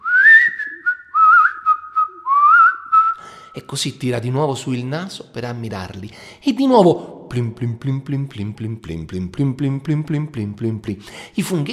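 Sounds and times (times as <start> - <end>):
whistled imitation of songbirds singing: 0.0 - 3.2
speech: 3.6 - 11.7.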